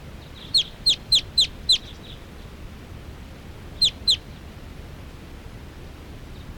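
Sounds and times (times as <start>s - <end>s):
faint low hum: 0.0s - 6.5s
wild birds calling: 0.3s - 2.2s, 3.8s - 4.2s.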